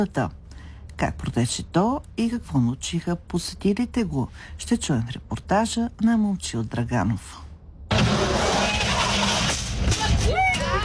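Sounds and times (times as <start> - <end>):
speech: 0.0 - 0.4, 1.0 - 7.4
frontal collision simulator crash: 7.9 - 10.3.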